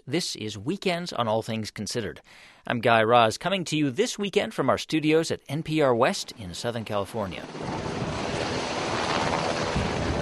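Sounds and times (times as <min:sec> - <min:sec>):
speech: 0:00.1 - 0:08.0
Navy helicopters loading relief supplies: 0:07.3 - 0:10.2.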